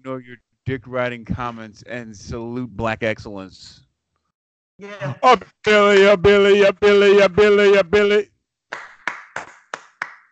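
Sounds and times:
speech: 0.1 - 3.8, 4.8 - 8.9
hand claps: 8.7 - 10.3.

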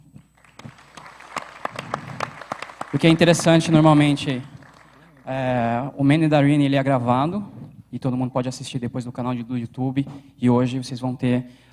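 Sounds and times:
small audience clapping: 0.2 - 5.8
speech: 3.0 - 4.5, 5.3 - 11.7.

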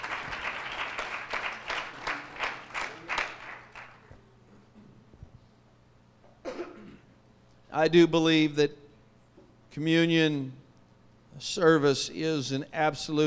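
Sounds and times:
seated audience clapping: 0.0 - 4.2
speech: 7.8 - 8.8, 9.8 - 10.6, 11.4 - 13.2.

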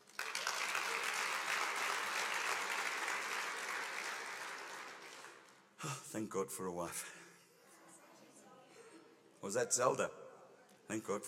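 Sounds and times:
audience applause: 0.0 - 5.6
speech: 5.8 - 7.2, 9.4 - 10.2, 10.9 - 11.2.

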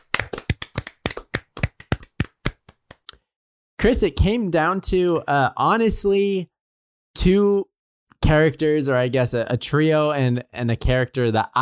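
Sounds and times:
hands clapping: 0.0 - 3.2
speech: 3.8 - 6.5, 7.2 - 11.6.

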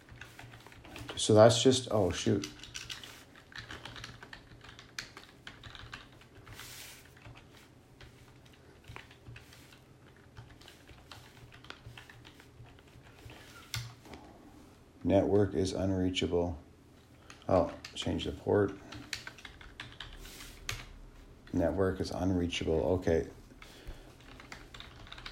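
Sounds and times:
speech: 1.2 - 2.6, 15.1 - 16.7, 17.5 - 18.8, 21.6 - 23.4
typing on a computer keyboard: 2.2 - 13.9, 18.8 - 20.9, 23.6 - 25.3.

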